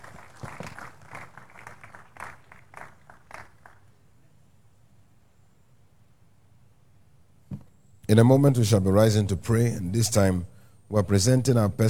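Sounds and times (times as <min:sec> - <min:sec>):
crowd clapping: 0:00.0 - 0:04.0
speech: 0:08.1 - 0:11.8.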